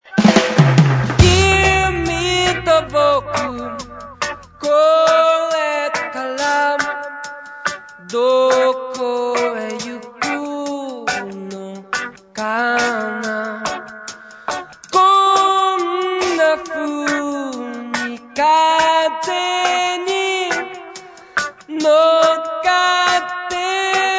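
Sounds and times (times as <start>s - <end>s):
reggae music: 0.0s - 24.1s.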